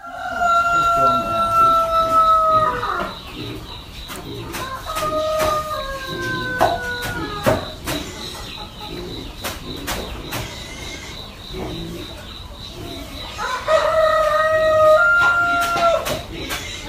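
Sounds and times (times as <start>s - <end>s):
rooster crowing: 0.0s - 3.2s, 4.6s - 8.4s, 13.2s - 16.3s.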